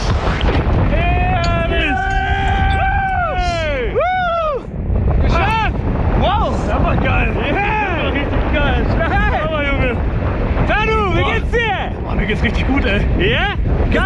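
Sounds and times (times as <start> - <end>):
wind rushing during skydiving free fall: 0.0 - 14.0
people shouting and whooping: 0.9 - 5.8.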